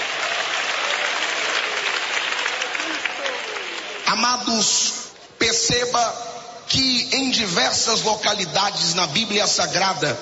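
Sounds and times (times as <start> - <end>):
audience clapping hands in applause: 0.0 - 4.7
speech: 4.1 - 10.2.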